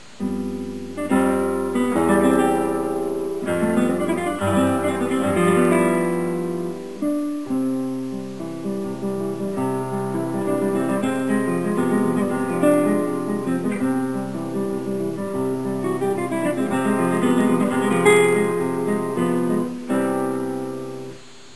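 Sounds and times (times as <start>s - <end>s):
guitar: 0.0s - 21.5s.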